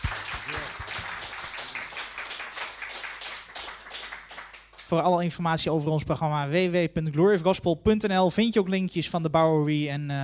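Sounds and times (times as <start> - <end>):
audience applause: 0.0 - 4.8
speech: 4.9 - 10.2.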